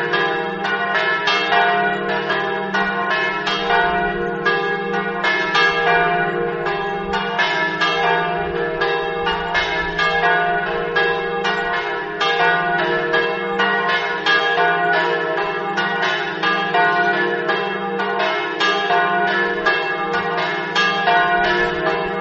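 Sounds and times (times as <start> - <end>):
bells in Torviscosa: 0.0 - 22.1.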